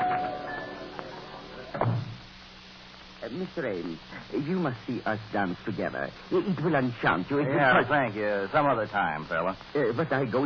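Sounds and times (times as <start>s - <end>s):
door shutting thud: 1.8s - 2.2s
speech: 3.3s - 10.4s.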